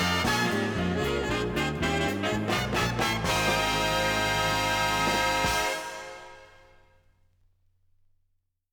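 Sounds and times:
saxophone playing jazz, funk and soul: 0.0 - 6.8.

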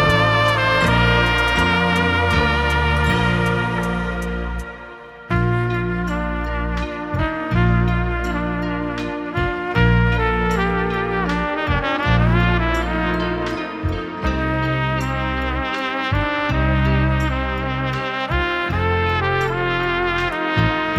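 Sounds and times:
trumpet hits: 0.0 - 20.9.

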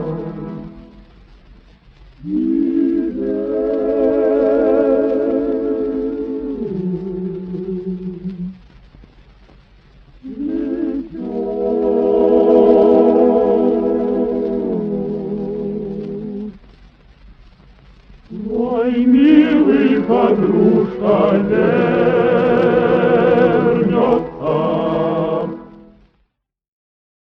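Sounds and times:
vocal octet singing: 0.0 - 1.1, 2.2 - 8.6, 10.2 - 16.6, 18.3 - 26.0.

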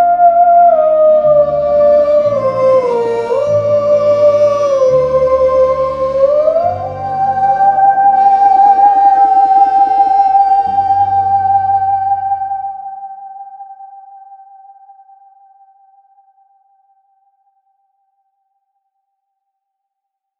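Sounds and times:
theremin: 0.0 - 15.5.

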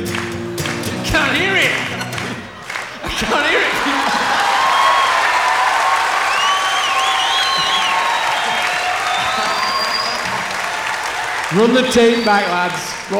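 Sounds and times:
large crowd clapping: 0.0 - 13.1
laughter: 0.6 - 13.1
high whistles: 4.6 - 5.4, 6.2 - 10.8, 11.6 - 13.1
speech: 11.6 - 13.1.

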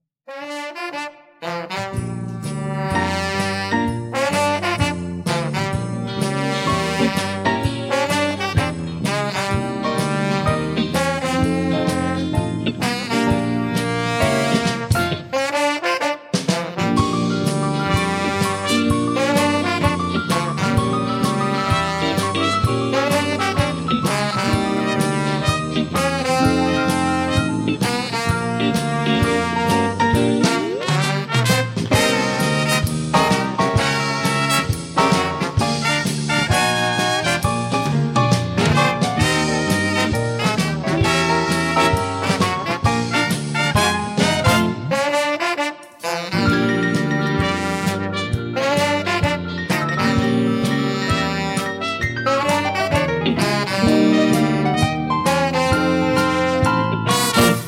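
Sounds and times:
orchestra: 0.4 - 57.6.

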